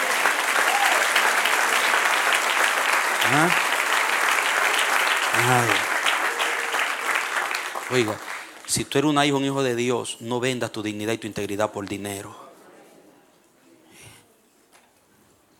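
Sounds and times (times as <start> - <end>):
audience applause: 0.0 - 8.8
speech: 3.3 - 3.6, 5.5 - 5.8, 7.9 - 12.4.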